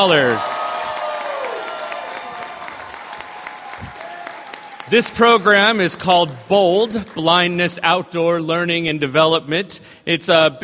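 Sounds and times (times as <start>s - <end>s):
speech: 0.0s - 0.6s, 4.9s - 10.6s
loud audience applause: 0.0s - 7.2s.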